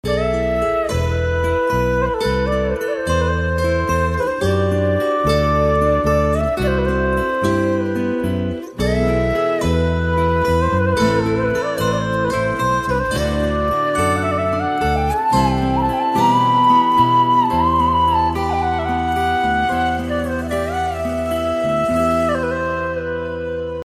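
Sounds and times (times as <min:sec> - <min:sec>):
flute: 0:00.0 - 0:23.8.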